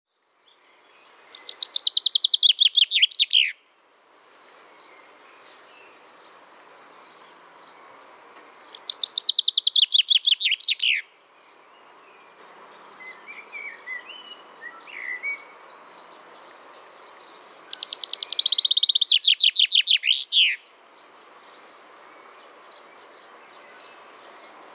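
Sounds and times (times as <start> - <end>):
common chaffinch Fringilla coelebs singing: 0.5 - 3.7, 8.6 - 12.4, 13.0 - 16.4, 17.0 - 24.7.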